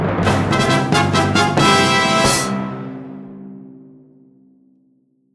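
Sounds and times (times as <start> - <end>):
fanfare: 0.2 - 3.6.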